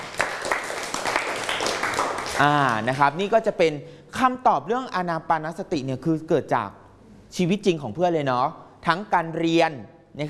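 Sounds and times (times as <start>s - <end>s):
classroom audience applauding after a Thai music performance: 0.0s - 2.9s
speech: 2.4s - 10.2s.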